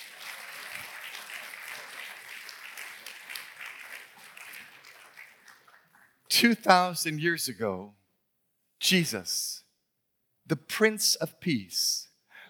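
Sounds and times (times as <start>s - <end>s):
audience clapping: 0.0s - 6.5s
speech: 6.3s - 8.0s, 8.8s - 9.6s, 10.5s - 12.4s.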